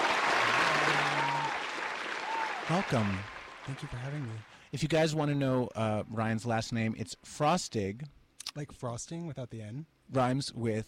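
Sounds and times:
studio audience applauding a guest co-host: 0.0 - 4.6
speech: 2.7 - 10.8.

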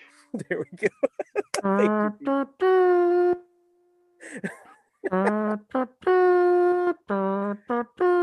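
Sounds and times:
speech: 0.3 - 3.4, 4.2 - 8.2
laughter: 0.4 - 1.9, 4.2 - 5.5
person humming nose trumpet imitation of a bugle call: 0.4 - 3.4, 5.1 - 8.2.

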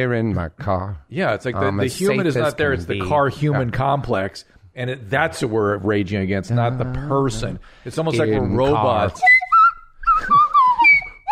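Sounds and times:
speech: 0.0 - 9.4
slide whistle being played: 9.2 - 11.2.

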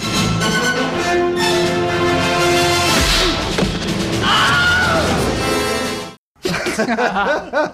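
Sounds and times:
orchestral film music: 0.0 - 6.2
Wilhelm scream of a thug falling off a roof: 4.2 - 5.2
laughter: 6.4 - 7.7.

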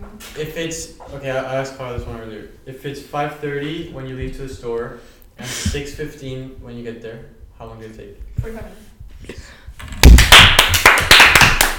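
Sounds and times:
speech: 0.4 - 9.6
hands clapping: 9.8 - 11.7.

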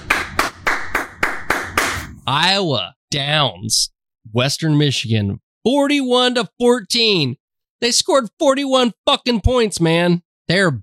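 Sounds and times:
hands clapping: 0.0 - 2.1
speech: 2.3 - 10.8.

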